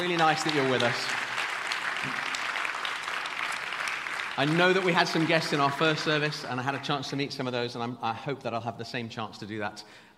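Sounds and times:
speech: 0.0 - 1.2, 2.0 - 2.2, 4.4 - 10.1
crowd applauding: 0.0 - 7.2.

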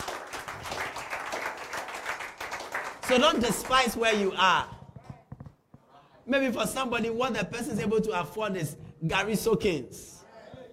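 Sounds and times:
audience clapping: 0.0 - 4.5
speech: 3.1 - 4.7, 6.3 - 10.1.

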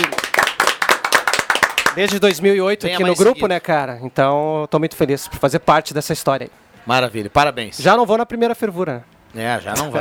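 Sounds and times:
round of applause with hands clapping: 0.0 - 2.5
speech: 2.0 - 9.9.

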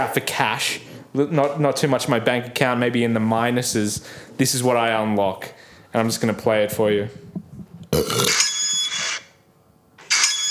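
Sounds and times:
speech: 0.0 - 7.4, 8.0 - 8.4
Opal card tap-on beep: 8.1 - 9.3, 10.1 - 10.4.

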